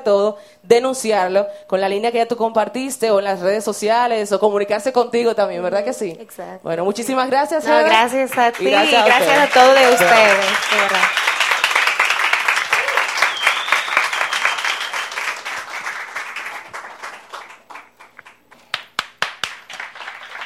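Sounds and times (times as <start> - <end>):
speech: 0.0 - 11.3
audience applause: 7.7 - 20.4.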